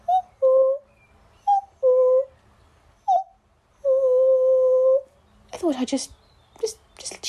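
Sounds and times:
cuckoo calling: 0.0s - 5.7s
speech: 5.7s - 7.2s.

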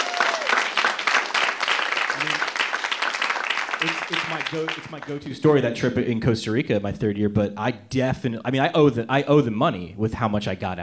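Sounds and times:
audience applause: 0.0s - 5.5s
speech: 3.8s - 10.8s.

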